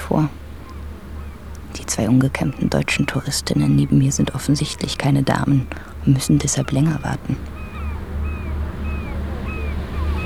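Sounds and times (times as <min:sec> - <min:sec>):
deep constant ferry engine drone: 0:00.0 - 0:10.2
sea waves heard from a ferry deck: 0:00.0 - 0:10.2
speech: 0:00.1 - 0:00.4, 0:02.0 - 0:07.6
faint thin whistling tones: 0:07.5 - 0:10.2.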